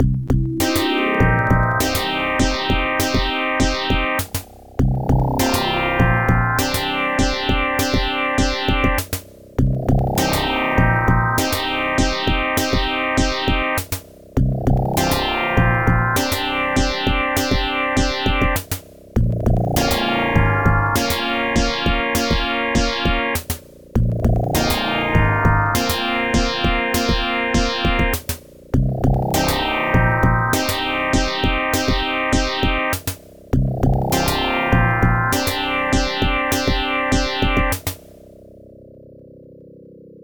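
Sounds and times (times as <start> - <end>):
groove music: 0.3 - 9.1, 9.8 - 13.9, 14.6 - 23.4, 24.0 - 38.1.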